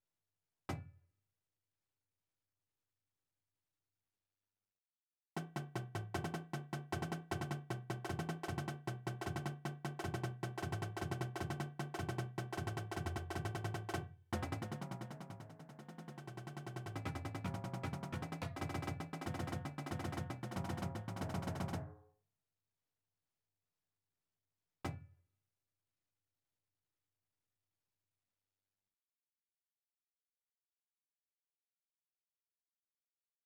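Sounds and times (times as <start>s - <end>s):
drumline playing warmups: 5.4s - 21.8s.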